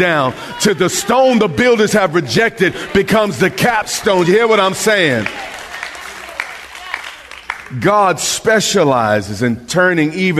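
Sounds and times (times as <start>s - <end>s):
speech: 0.0s - 5.6s, 7.7s - 10.3s
standing ovation applause: 0.0s - 8.1s.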